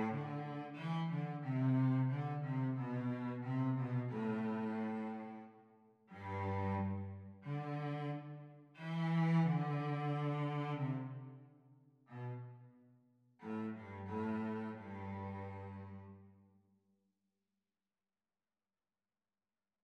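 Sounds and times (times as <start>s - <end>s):
cello duet playalong: 0.0s - 11.5s, 12.1s - 12.7s, 13.4s - 16.4s.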